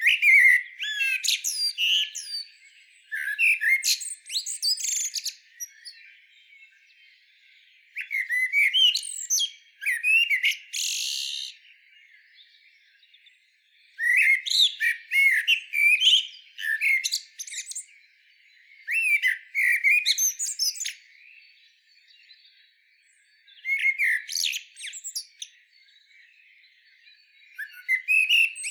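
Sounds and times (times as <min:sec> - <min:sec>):
common blackbird song of fluted whistles and high twitters: 0:00.0 - 0:06.2, 0:07.9 - 0:11.6, 0:13.9 - 0:18.0, 0:18.8 - 0:21.4, 0:23.4 - 0:25.7, 0:27.5 - 0:28.7.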